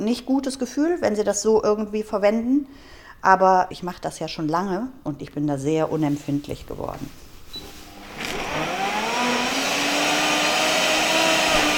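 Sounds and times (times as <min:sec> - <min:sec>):
speech: 0:00.0 - 0:07.2
smoothie blender chopping leafy greens: 0:07.9 - 0:11.7.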